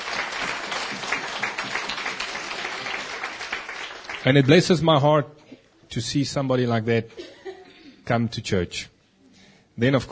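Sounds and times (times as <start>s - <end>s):
audience applause: 0.0s - 4.8s
speech: 4.2s - 7.2s, 8.1s - 9.0s, 9.8s - 10.1s.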